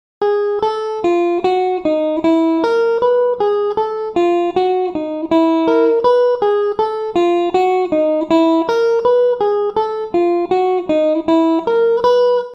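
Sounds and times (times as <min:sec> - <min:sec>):
guitar playing spider pattern: 0:00.2 - 0:12.5.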